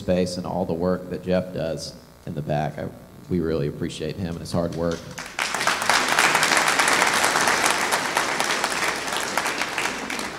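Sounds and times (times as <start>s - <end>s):
speech: 0.0s - 5.3s
audience clapping: 4.7s - 10.3s.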